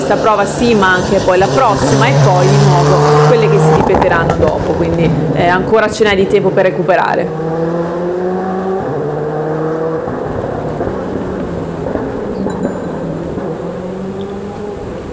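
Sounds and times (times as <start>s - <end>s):
passing engines echoing between valleys: 0.0s - 15.1s
speech: 0.1s - 7.8s.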